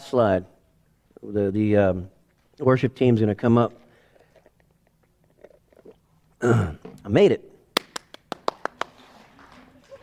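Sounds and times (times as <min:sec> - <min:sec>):
speech: 0:00.1 - 0:00.6, 0:01.2 - 0:03.8, 0:06.4 - 0:07.5
single person applauding: 0:07.8 - 0:10.0.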